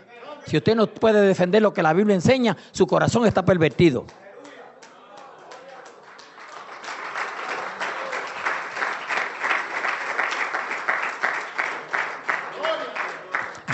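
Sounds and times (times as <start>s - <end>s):
speech: 0.4s - 4.3s
audience applause: 5.1s - 13.7s.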